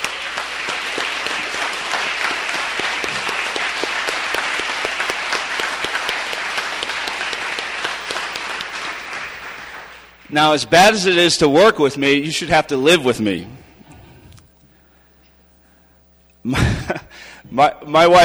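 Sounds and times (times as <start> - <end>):
audience applause: 0.0 - 10.7
speech: 10.3 - 13.6, 17.6 - 18.2.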